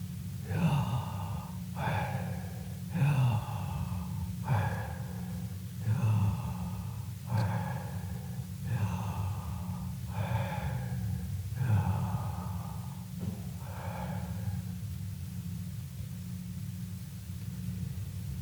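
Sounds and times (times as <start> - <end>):
low rumbling background: 0.0 - 18.3
person imitating inhaling and exhaling: 0.4 - 14.7.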